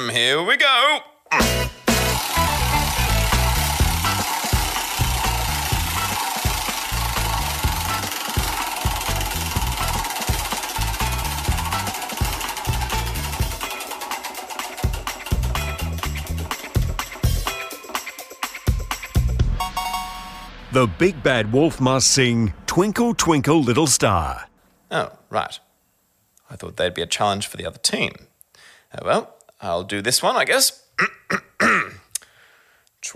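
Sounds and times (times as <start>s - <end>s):
speech: 0.0s - 1.6s, 20.8s - 25.6s, 26.5s - 28.3s, 28.9s - 31.8s
prize wheel spinning and clicking: 1.3s - 19.2s.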